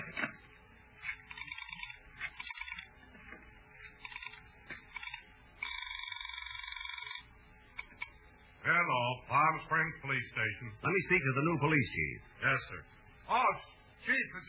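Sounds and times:
telephone ringing: 0.0 - 8.2
speech: 8.8 - 14.4.

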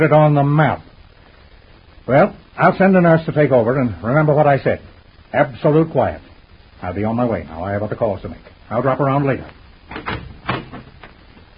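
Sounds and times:
speech: 0.0 - 0.9, 2.1 - 10.2
hotel room door opening with clunks and rattles: 9.9 - 11.2.

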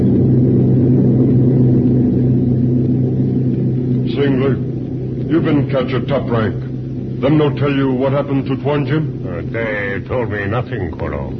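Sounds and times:
large plane taking off: 0.0 - 11.3
speech: 5.4 - 6.6, 7.2 - 11.3.

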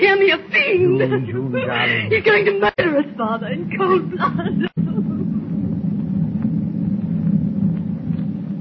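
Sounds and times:
speech: 0.0 - 5.5
thunder rolling across the dark ocean: 3.6 - 8.5.

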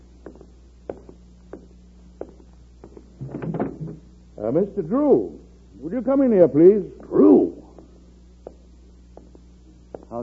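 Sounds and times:
door being opened: 3.2 - 4.0
soft thuds: 3.2 - 4.1
speech: 4.4 - 7.3.

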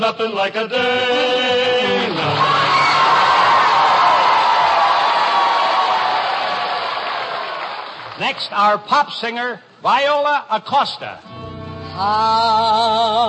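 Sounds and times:
speech: 0.0 - 2.6, 8.2 - 11.4, 12.0 - 13.2
audience cheering: 2.1 - 8.2.

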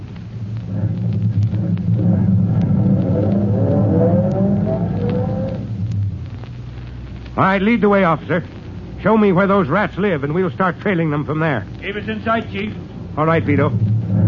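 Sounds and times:
car engine approaching and idling: 1.0 - 5.8
speech: 7.4 - 13.9.

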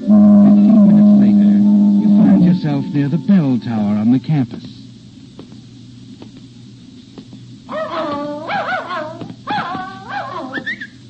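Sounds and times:
constant low hum: 0.0 - 11.0
speech: 2.6 - 4.8
dog barking and whimpering: 7.7 - 11.0.

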